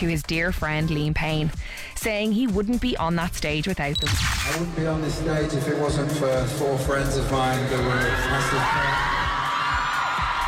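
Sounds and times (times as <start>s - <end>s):
speech: 0.0s - 9.2s
fans cheering inside Wembley: 7.3s - 10.4s.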